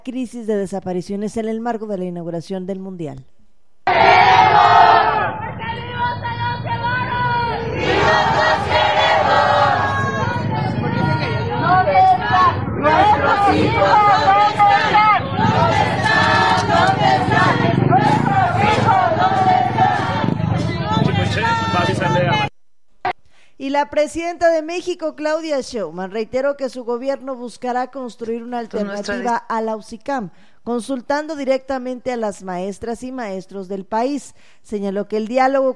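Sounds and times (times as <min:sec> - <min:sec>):
speech: 0:00.0 - 0:03.3, 0:23.6 - 0:35.7
search collectives marching and chanting on Calzada de Tlalpan in a protest: 0:03.9 - 0:22.5.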